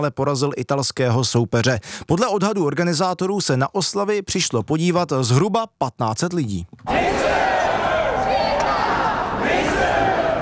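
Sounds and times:
speech: 0:00.0 - 0:07.5
enthusiastic crowd chanting at celebrations on Jakubské náměstí: 0:06.9 - 0:10.4.

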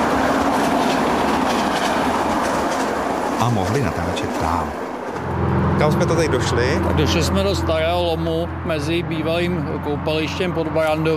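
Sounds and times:
passing train rumbling on a railway line: 0:00.0 - 0:11.1
speech: 0:03.4 - 0:04.8, 0:05.4 - 0:11.1.

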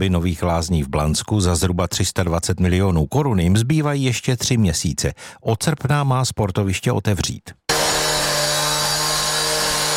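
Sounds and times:
speech: 0:00.0 - 0:07.6
tiler's power saw cutting outdoor paving tiles: 0:07.7 - 0:09.9.

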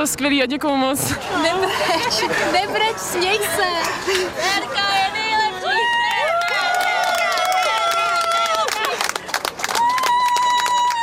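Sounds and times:
speech: 0:00.0 - 0:05.2
laughter: 0:01.1 - 0:04.8
crowd clapping: 0:05.9 - 0:11.0.

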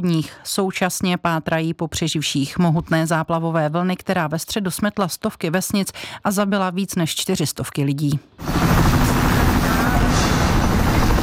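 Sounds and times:
speech: 0:00.0 - 0:09.0
military helicopter flying: 0:08.3 - 0:11.2.

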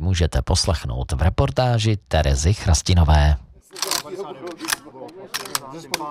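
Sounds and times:
speech: 0:00.1 - 0:03.9, 0:05.7 - 0:06.0
submachine guns clicking at Buchlov castle: 0:03.8 - 0:05.7.

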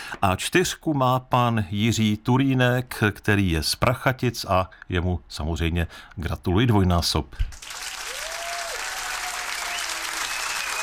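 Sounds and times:
speech: 0:00.1 - 0:07.7
applause: 0:07.5 - 0:10.8.

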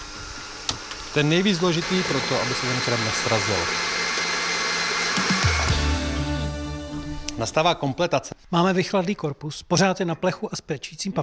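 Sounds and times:
electric mixer whisking cream: 0:00.0 - 0:06.5
speech: 0:01.2 - 0:04.0, 0:07.4 - 0:11.2.

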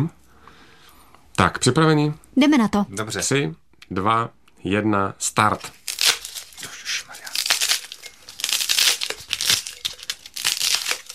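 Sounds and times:
speech: 0:01.4 - 0:05.8
polystyrene crumpled and stuffed into jar: 0:05.6 - 0:11.1.

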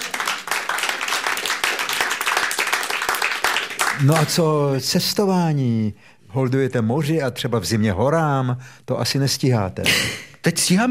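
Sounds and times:
crowd applause: 0:00.0 - 0:04.4
speech: 0:04.0 - 0:10.8.

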